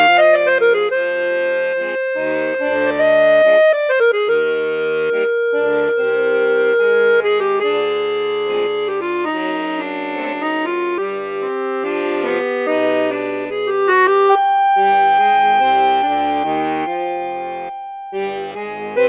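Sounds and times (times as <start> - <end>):
accordion playing in bassoon register: 0.0 - 19.0.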